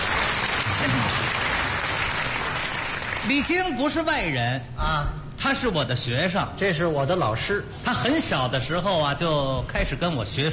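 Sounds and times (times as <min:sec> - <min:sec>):
audience applause: 0:00.0 - 0:03.5
speech: 0:03.3 - 0:10.5.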